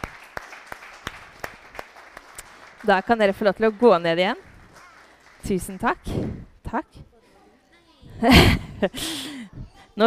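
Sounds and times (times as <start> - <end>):
clapping: 0.0 - 6.1
speech: 2.8 - 4.5, 5.4 - 7.1, 8.2 - 9.3
laughter: 8.1 - 9.6.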